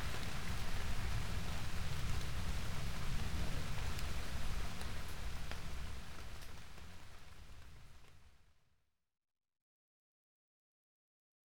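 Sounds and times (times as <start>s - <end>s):
rain: 0.0s - 8.4s.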